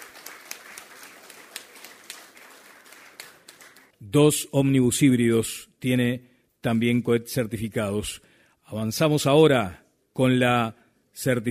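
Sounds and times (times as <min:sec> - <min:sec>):
applause: 0:00.0 - 0:04.0
speech: 0:04.0 - 0:11.4.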